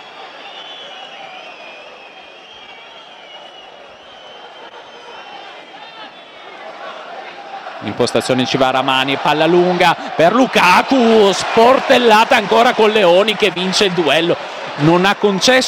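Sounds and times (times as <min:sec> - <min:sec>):
stadium crowd whistling: 0:00.0 - 0:15.6
speech: 0:07.8 - 0:15.6.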